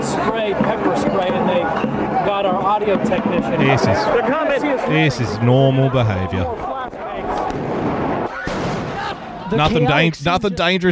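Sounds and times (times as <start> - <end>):
speech: 0.3 - 6.7, 9.5 - 10.9
flashbang grenade blasts: 6.9 - 9.2.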